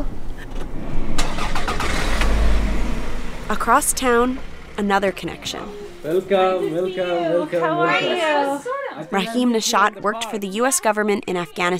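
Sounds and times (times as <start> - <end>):
car engine starting: 0.0 - 7.2
speech: 3.5 - 11.7.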